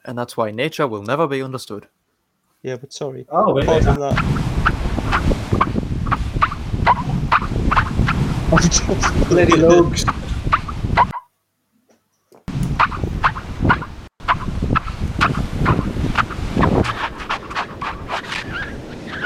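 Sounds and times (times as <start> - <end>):
speech: 0.0 - 2.0, 2.6 - 5.4, 8.6 - 10.2
singing sand squeaking: 3.6 - 11.2, 12.5 - 19.2.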